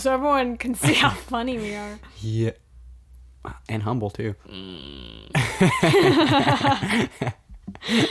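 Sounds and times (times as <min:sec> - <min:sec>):
speech: 0:00.0 - 0:02.6, 0:03.4 - 0:08.0
voice imitating retching and barfing with mouth noises: 0:04.4 - 0:05.4
laughter: 0:05.4 - 0:08.0.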